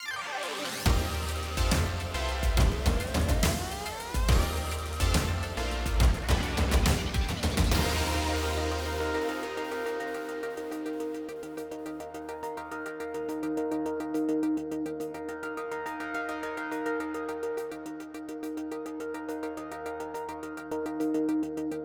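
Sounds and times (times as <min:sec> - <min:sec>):
game background music: 0:00.0 - 0:21.8.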